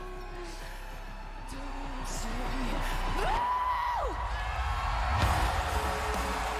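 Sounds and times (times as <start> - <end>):
audience applauding: 2.0 - 6.5.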